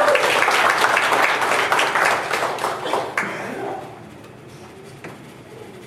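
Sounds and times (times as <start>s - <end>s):
audience applauding: 0.0s - 3.9s.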